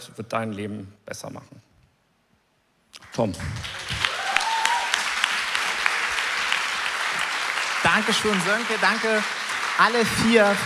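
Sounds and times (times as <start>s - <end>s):
speech: 0.1s - 1.7s, 3.2s - 3.8s, 7.8s - 10.6s
audience applause: 3.1s - 10.6s.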